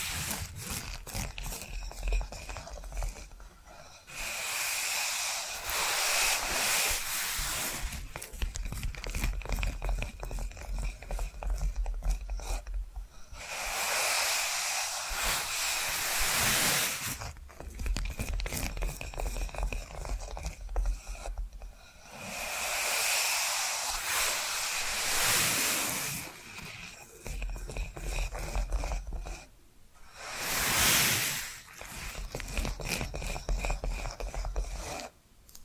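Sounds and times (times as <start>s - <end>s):
dense rasping scratches on a rough surface: 0.0s - 29.5s, 30.1s - 35.2s
bright hissing burst: 4.1s - 8.1s, 13.4s - 17.3s, 22.2s - 26.5s, 30.0s - 32.2s.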